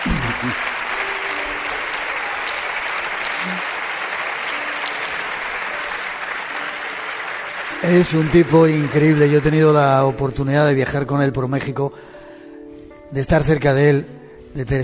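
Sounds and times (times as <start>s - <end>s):
audience applause: 0.0s - 10.2s
speech: 0.4s - 0.7s, 7.8s - 12.1s, 13.1s - 14.8s.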